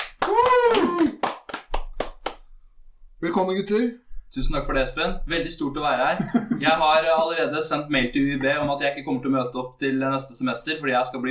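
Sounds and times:
short applause: 0:00.0 - 0:02.4
vocal cheer: 0:00.1 - 0:01.4
speech: 0:03.2 - 0:11.2
laughter: 0:06.1 - 0:07.3.

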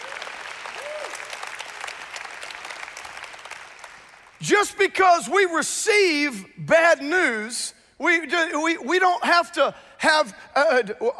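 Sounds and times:
audience clapping: 0:00.0 - 0:04.4
speech: 0:04.4 - 0:11.1.

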